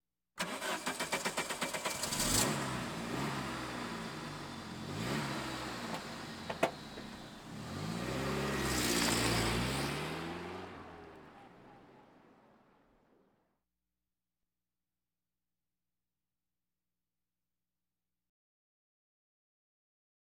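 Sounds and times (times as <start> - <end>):
various automobiles: 0.4 - 13.3.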